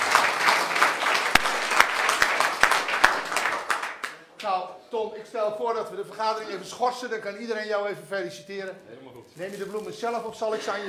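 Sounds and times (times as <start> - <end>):
applause for a newly sworn-in council member at a council meeting: 0.0 - 4.3
speech: 5.4 - 10.8.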